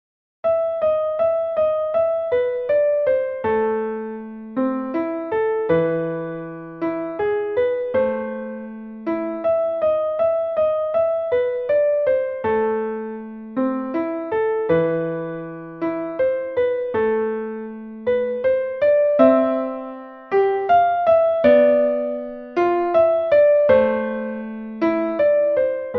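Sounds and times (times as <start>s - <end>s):
easy piano: 0.4s - 25.9s.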